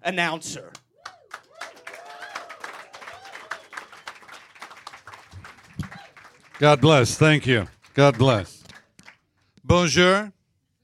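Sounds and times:
speech: 0.0 - 0.8, 6.6 - 8.6, 9.6 - 10.4
voices cheering: 1.0 - 4.4, 5.4 - 8.6
studio audience applause welcoming a new announcer: 1.0 - 9.3.

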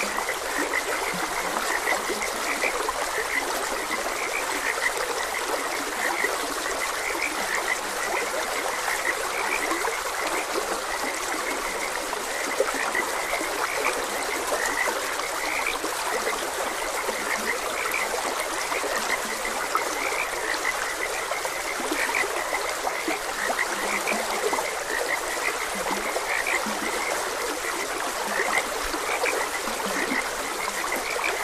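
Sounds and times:
frogs croaking: 0.0 - 31.4
stream water trickling: 0.0 - 31.4.

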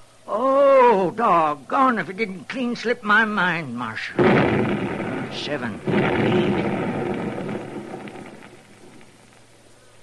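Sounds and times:
speech: 0.3 - 6.9
blasting charges exploding in a mine shaft: 4.2 - 9.6.

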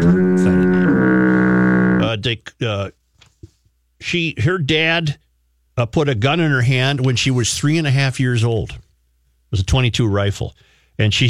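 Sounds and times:
foghorn sound effect: 0.0 - 2.1
speech: 2.2 - 3.0, 4.0 - 5.2, 5.8 - 8.8, 9.5 - 11.2.

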